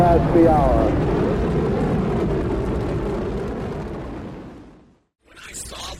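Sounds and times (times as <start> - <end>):
space shuttle liftoff rocket engines: 0.0 - 4.6.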